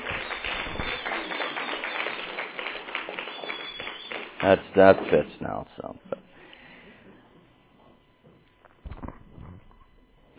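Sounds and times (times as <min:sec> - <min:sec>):
person whistling: 0:00.0 - 0:02.4, 0:03.2 - 0:04.2
audience clapping: 0:00.0 - 0:05.6
speech: 0:04.4 - 0:06.3.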